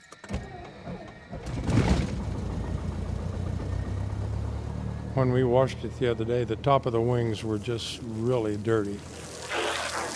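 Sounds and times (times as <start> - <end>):
Cessna 172 small propeller airplane engine starting and idling: 0.0 - 8.1
speech: 5.2 - 9.2.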